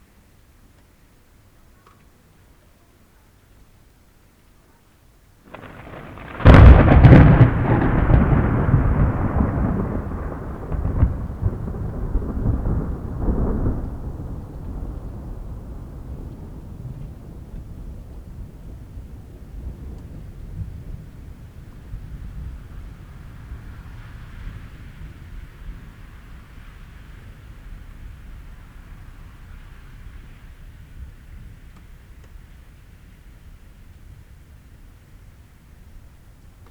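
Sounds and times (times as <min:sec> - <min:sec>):
thunder: 0:05.5 - 0:31.6.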